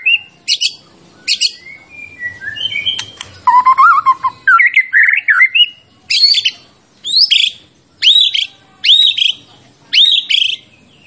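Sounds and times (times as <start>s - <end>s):
white-rumped shama singing: 0.0s - 11.0s.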